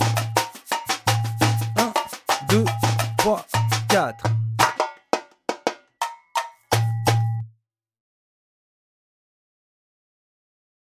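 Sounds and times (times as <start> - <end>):
surdo drum: 0.0 - 7.4.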